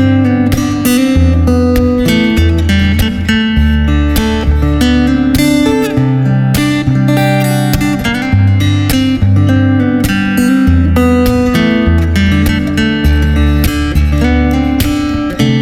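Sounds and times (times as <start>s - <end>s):
western guitar: 0.0s - 15.6s.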